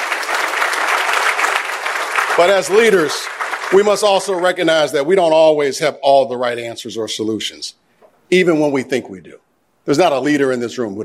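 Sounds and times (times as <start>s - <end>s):
audience applause: 0.0s - 4.6s
speech: 2.4s - 11.0s.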